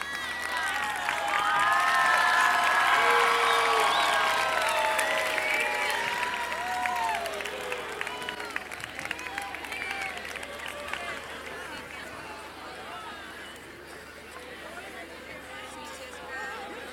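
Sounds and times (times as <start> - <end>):
crowd clapping: 0.0 - 12.7.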